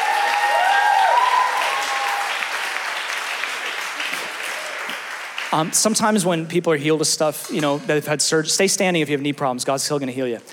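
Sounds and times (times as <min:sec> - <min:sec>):
whoops and shouts: 0:00.0 - 0:02.8
audience applauding: 0:00.0 - 0:06.3
speech: 0:05.5 - 0:10.5.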